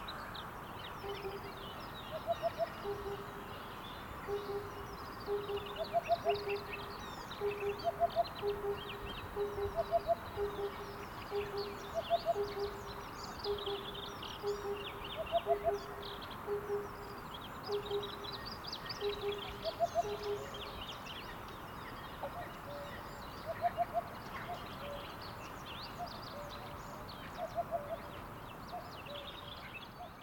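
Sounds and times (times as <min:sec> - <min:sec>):
small birds twittering: 0:00.0 - 0:30.2
speech: 0:01.1 - 0:03.7, 0:04.3 - 0:18.4, 0:19.0 - 0:20.7
cuckoo calling: 0:02.1 - 0:03.4, 0:04.2 - 0:20.8, 0:22.2 - 0:25.2, 0:27.4 - 0:28.1.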